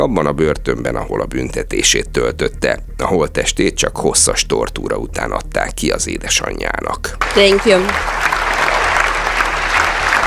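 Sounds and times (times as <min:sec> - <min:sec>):
speech: 0:00.0 - 0:08.4
low hum: 0:00.0 - 0:10.2
large audience applause after a speech: 0:07.1 - 0:10.2.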